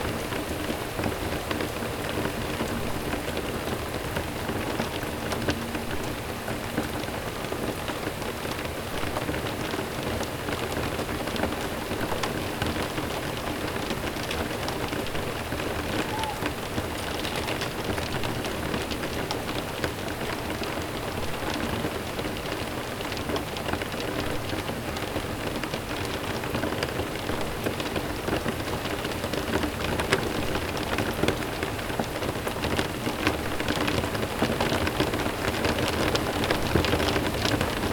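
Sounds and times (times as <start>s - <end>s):
rain droplets: 0.0s - 37.9s.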